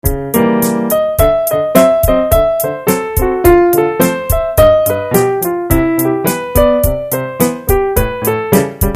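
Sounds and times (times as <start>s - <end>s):
piano: 0.0s - 8.9s.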